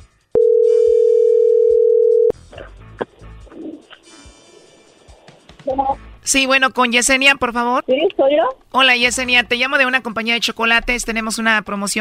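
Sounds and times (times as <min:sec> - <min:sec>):
telephone ringing tone while dialing: 0:00.4 - 0:02.3
speech: 0:06.3 - 0:11.9.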